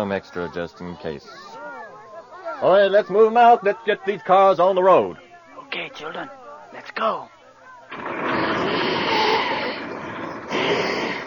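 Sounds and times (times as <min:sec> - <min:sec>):
speech: 0:00.0 - 0:01.6, 0:02.6 - 0:05.2, 0:05.8 - 0:08.1, 0:10.7 - 0:10.9
person blowing their nose: 0:08.3 - 0:11.2.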